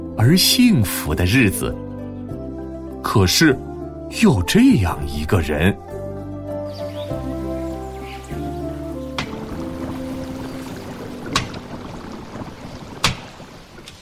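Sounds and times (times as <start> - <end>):
speech: 0.2 - 1.8, 3.0 - 5.9
sustained musical notes: 3.2 - 13.0
water sloshing from scooping: 6.8 - 14.0.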